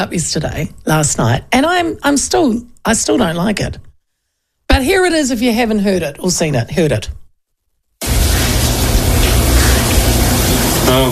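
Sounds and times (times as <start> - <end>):
speech: 0.0 - 3.8, 4.8 - 7.2, 10.9 - 11.1
shower water running: 8.0 - 11.1.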